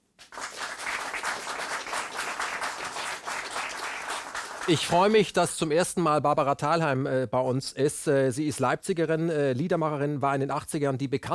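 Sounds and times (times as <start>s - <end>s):
studio audience applause: 0.2s - 5.3s
speech: 4.7s - 11.3s.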